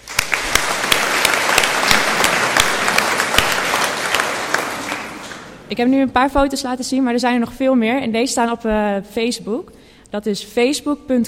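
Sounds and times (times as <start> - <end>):
audience applause: 0.0 - 5.7
speech: 5.7 - 11.2.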